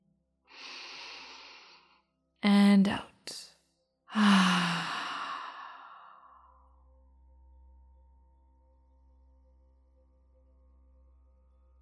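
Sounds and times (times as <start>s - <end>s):
slow deep breath drawn in: 0.5s - 2.0s, 4.1s - 6.5s
speech: 2.8s - 3.4s, 4.1s - 4.8s.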